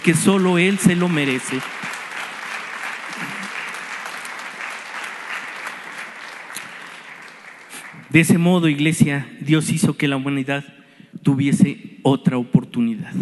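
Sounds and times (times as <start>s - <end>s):
speech: 0.0s - 1.8s, 8.1s - 13.1s
audience applauding: 0.0s - 8.4s.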